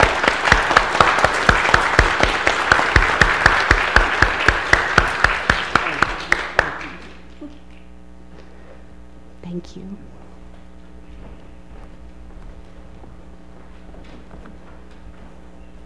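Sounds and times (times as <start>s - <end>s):
audience applause: 0.0s - 7.3s.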